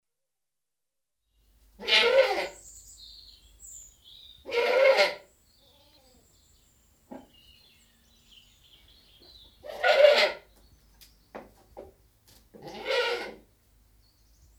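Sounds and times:
British goat bleating: 0:01.8 - 0:02.6, 0:04.5 - 0:06.3, 0:09.6 - 0:10.5, 0:12.6 - 0:13.4.

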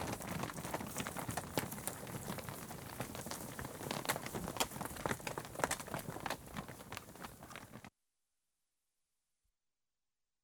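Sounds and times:
livestock cattle on tarmac: 0:00.0 - 0:07.9.

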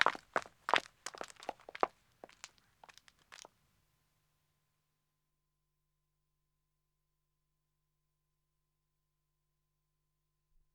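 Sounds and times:
two women running on a country road: 0:00.0 - 0:03.5.

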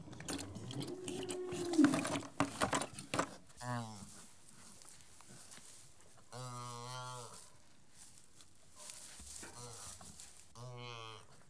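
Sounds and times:
cattle calf mooing: 0:00.1 - 0:02.3, 0:06.3 - 0:07.5, 0:10.6 - 0:11.4.

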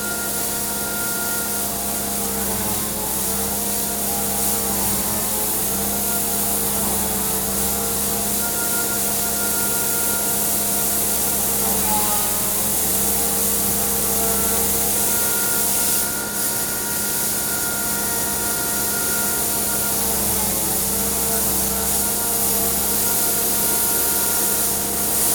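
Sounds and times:
grain blower farm machinery: 0:00.0 - 0:25.3.

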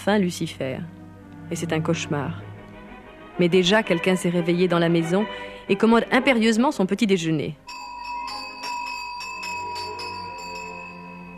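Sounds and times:
speech: 0:00.0 - 0:02.5, 0:03.4 - 0:07.8
small hand bells shaken rapidly: 0:07.7 - 0:11.3.

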